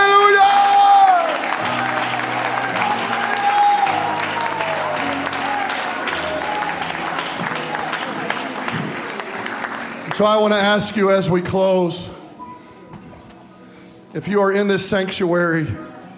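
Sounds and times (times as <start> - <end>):
audience clapping hands: 0.0 - 11.0
speech: 10.2 - 12.2, 14.1 - 15.9.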